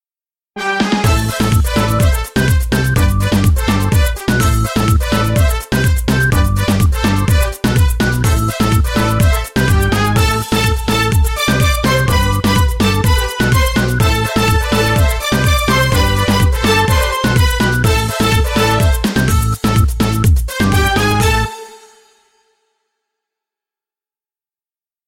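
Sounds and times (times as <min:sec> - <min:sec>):
reggaeton music: 0:00.6 - 0:22.1.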